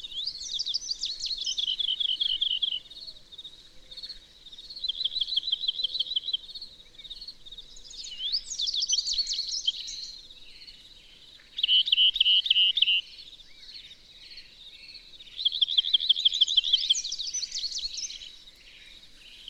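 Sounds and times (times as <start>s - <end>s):
bird twittering song: 0.0s - 19.4s.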